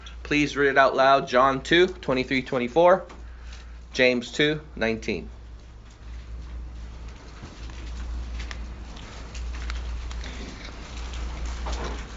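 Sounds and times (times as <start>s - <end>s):
speech: 0.3s - 3.2s, 3.9s - 5.4s
pages turning in Bibles: 5.7s - 12.1s.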